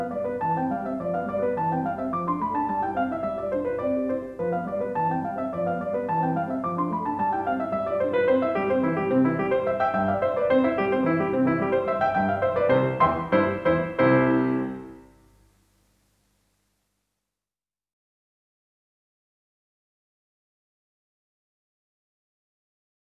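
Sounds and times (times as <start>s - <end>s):
piano sonata: 0.0s - 15.4s.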